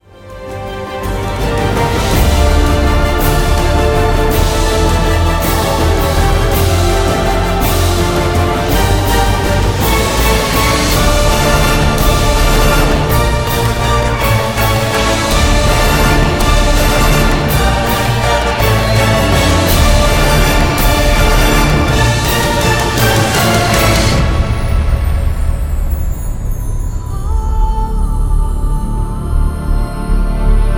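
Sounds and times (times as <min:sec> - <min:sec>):
epic cataclysmic score music: 0:00.0 - 0:30.7.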